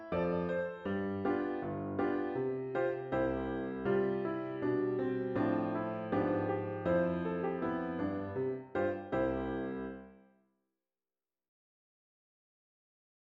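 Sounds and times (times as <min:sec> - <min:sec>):
piano: 0:00.0 - 0:10.4.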